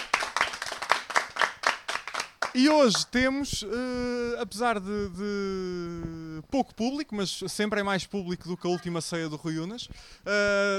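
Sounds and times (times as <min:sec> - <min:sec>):
small audience applauding at a live event in a bookstore: 0:00.0 - 0:03.2
speech: 0:02.6 - 0:10.7.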